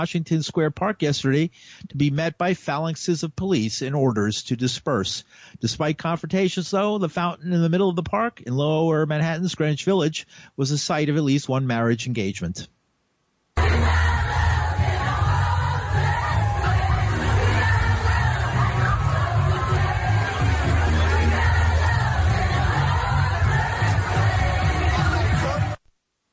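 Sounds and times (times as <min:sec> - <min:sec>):
speech: 0:00.0 - 0:12.8
large crowd babble and shouting: 0:13.6 - 0:25.8.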